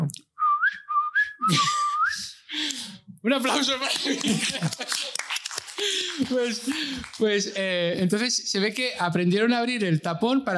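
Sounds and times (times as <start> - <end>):
person whistling imitation of a tit's call: 0.4 - 2.4
speech: 1.5 - 1.8, 3.2 - 5.2, 5.8 - 10.5
laughter: 3.7 - 7.2.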